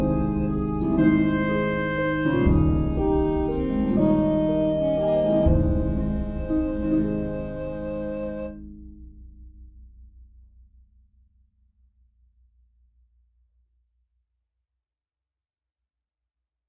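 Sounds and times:
saxophone melody: 0.0 - 8.6.

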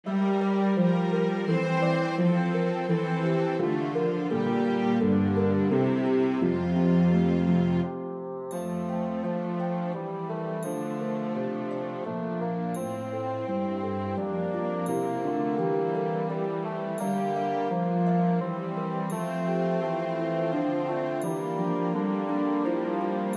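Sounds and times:
tenoroon melody: 0.1 - 23.3.

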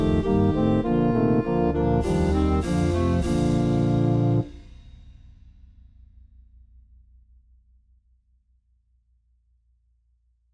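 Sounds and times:
clarinet melody: 0.0 - 4.5.

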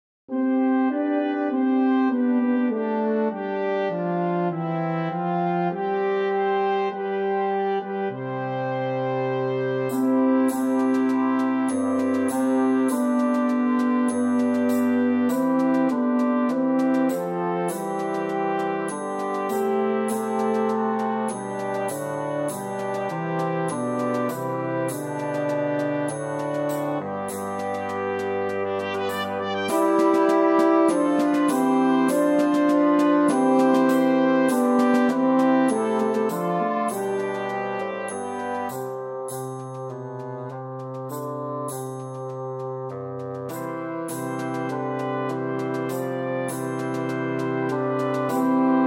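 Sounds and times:
bassoon melody: 0.3 - 48.8.

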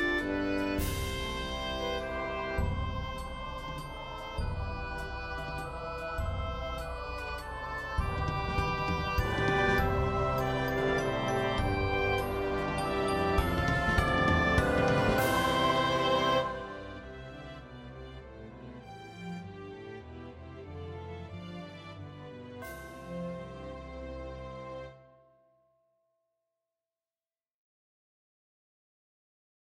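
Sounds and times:
oboe melody: 0.0 - 18.2.

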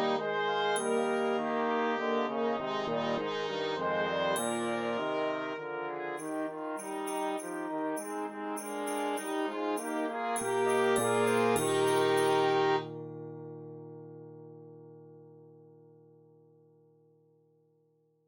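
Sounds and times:
trumpet melody: 0.0 - 12.9.

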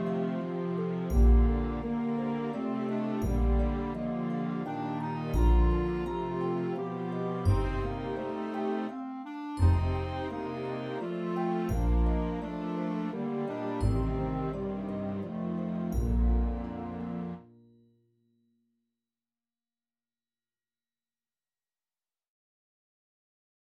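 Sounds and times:
clarinet melody: 0.0 - 17.5.

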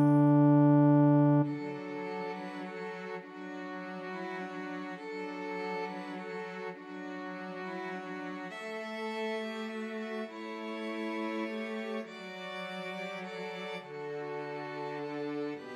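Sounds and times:
Christmas trio for two violins and cello: 0.2 - 15.7.

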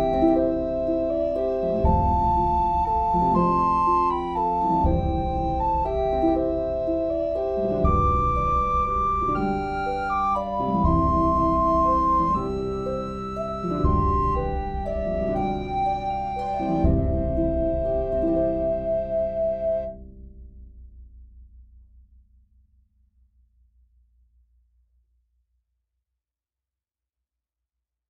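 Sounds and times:
recorder melody: 0.0 - 20.0.

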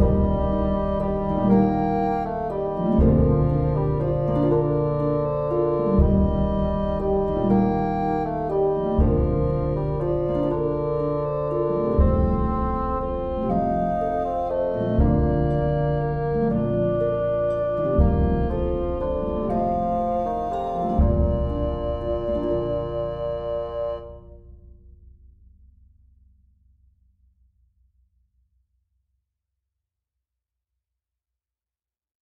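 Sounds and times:
tenoroon melody: 0.0 - 24.5.

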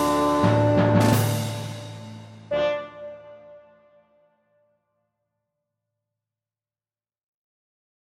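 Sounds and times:
tenoroon melody: 0.0 - 4.3.

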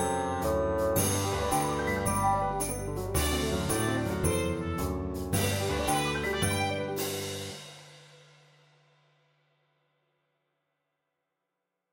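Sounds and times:
bassoon: 0.0 - 7.6
musical accompaniment: 0.0 - 7.9.

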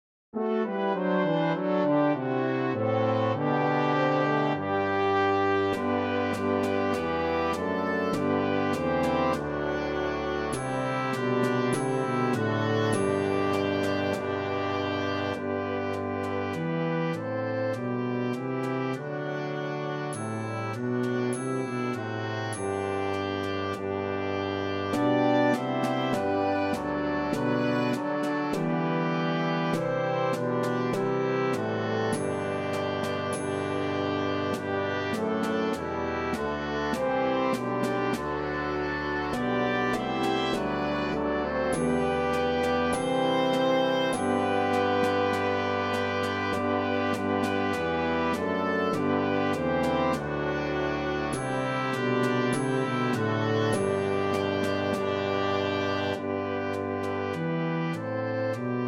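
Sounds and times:
oboe melody: 0.4 - 58.8.

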